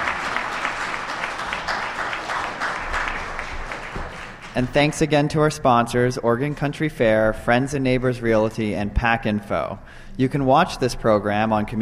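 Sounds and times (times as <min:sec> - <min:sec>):
audience round of applause: 0:00.0 - 0:04.7
speech: 0:04.6 - 0:11.7.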